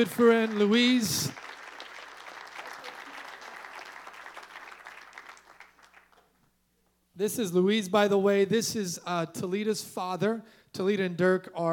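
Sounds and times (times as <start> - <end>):
speech: 0.0 - 1.4, 7.2 - 11.7
audience applause: 0.0 - 6.3.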